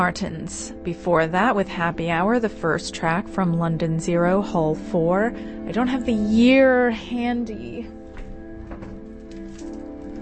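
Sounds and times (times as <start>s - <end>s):
speech: 0.0s - 8.0s
vinyl record crackle: 8.0s - 10.2s.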